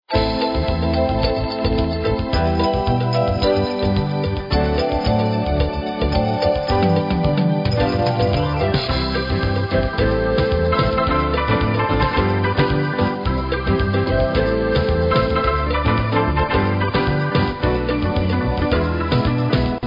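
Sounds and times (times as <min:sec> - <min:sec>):
samba music: 0:00.1 - 0:19.8.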